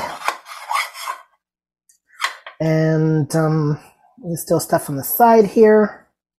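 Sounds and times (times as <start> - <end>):
spoon scraping mixture out of container: 0.0 - 1.4
speech: 2.6 - 6.0.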